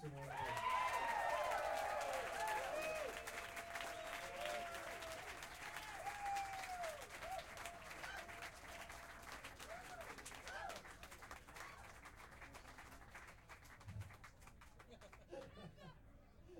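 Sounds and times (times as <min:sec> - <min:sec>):
crowd applause: 0:00.0 - 0:15.7
faint whoops: 0:00.3 - 0:08.8
laughter: 0:14.8 - 0:16.5.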